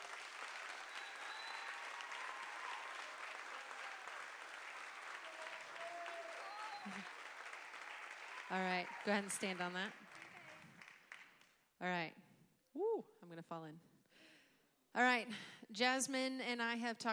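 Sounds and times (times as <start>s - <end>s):
audience applause: 0.0s - 11.4s
speech: 6.8s - 7.2s, 8.5s - 10.0s, 11.8s - 12.2s, 13.0s - 13.9s, 14.9s - 17.1s.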